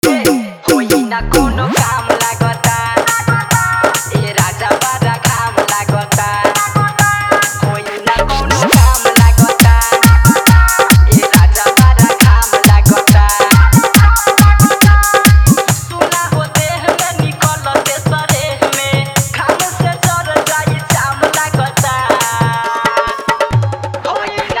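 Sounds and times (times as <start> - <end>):
hard dholak bass mix of Bhojpuri hit: 0.0 - 24.5.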